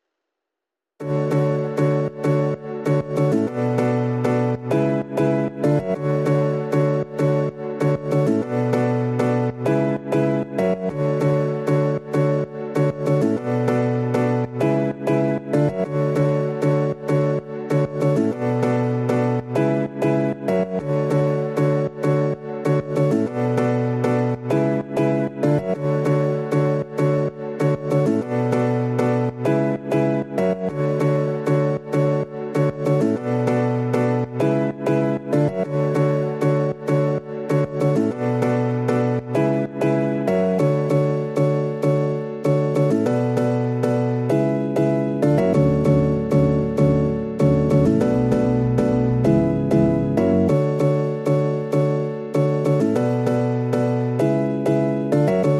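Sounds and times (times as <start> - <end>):
solo piano: 1.0 - 55.5.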